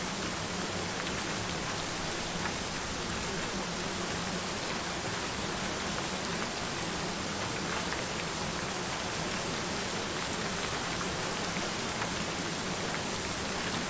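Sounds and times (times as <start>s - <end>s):
rain: 0.0s - 13.8s.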